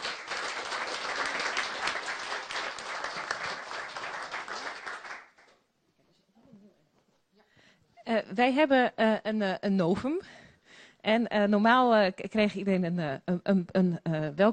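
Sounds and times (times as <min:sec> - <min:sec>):
applause for a newly sworn-in deputy committee member: 0:00.0 - 0:05.6
speech: 0:08.1 - 0:10.4, 0:11.0 - 0:14.5.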